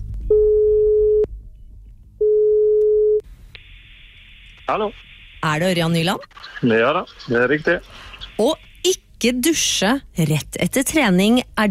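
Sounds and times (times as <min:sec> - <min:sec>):
low hum: 0:00.0 - 0:10.7
phone line ringing tone: 0:02.2 - 0:03.2
speech: 0:04.7 - 0:11.6.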